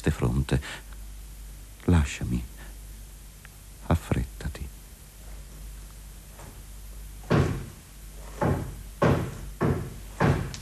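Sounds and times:
speech: 0.1s - 0.8s, 1.8s - 2.5s
heavy knocks on a wooden door: 7.2s - 10.5s.

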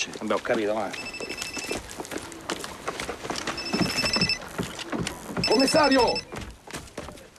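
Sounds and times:
speech: 0.0s - 1.1s, 5.5s - 6.3s
telephone bell ringing: 1.0s - 1.8s, 3.6s - 4.4s.

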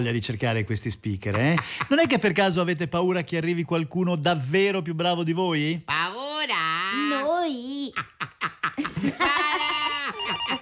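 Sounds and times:
speech: 0.0s - 8.1s
laughter: 7.9s - 10.6s
telephone ringing: 10.2s - 10.6s.

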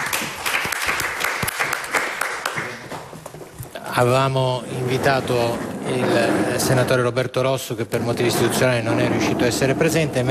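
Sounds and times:
audience applause: 0.0s - 3.0s
speech: 4.0s - 10.2s.

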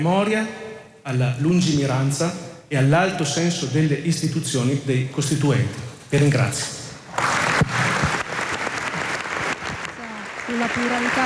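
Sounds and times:
speech: 0.0s - 6.8s, 10.6s - 11.2s
applause in parliamentary chamber: 7.1s - 11.2s.

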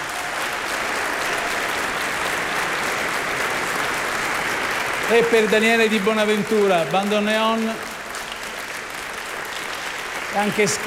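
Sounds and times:
audience applause: 0.0s - 10.8s
speech: 5.1s - 7.9s, 10.4s - 10.8s.

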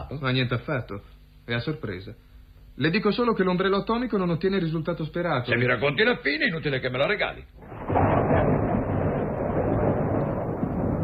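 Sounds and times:
speech: 0.1s - 7.8s
rolling thunder rumble: 7.6s - 11.0s.

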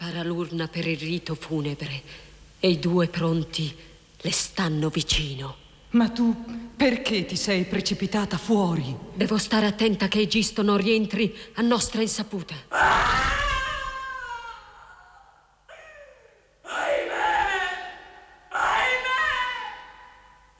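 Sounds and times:
speech: 0.2s - 13.4s
terrible screams from inside a palace: 12.7s - 16.1s, 16.7s - 20.0s.

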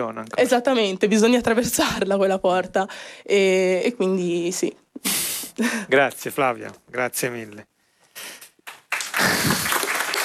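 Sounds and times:
speech: 0.0s - 8.4s
audience applause of encouragement: 8.6s - 10.2s.

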